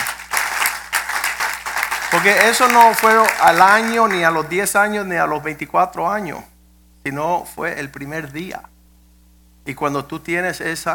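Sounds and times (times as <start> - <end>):
audience applause: 0.0 - 4.4
speech: 2.1 - 8.7, 9.6 - 10.9.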